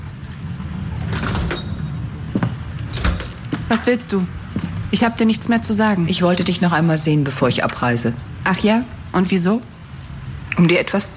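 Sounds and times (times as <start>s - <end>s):
sliding door opening: 0.2s - 3.6s
speech: 3.7s - 9.7s, 10.6s - 11.1s.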